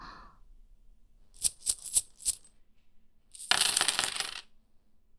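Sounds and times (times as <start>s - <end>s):
coins dropped during a betting card game: 1.4s - 2.5s, 3.4s - 4.4s.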